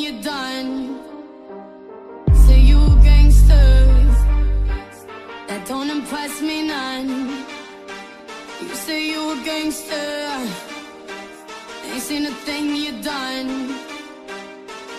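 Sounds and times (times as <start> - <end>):
deep bass: 2.3 - 4.8.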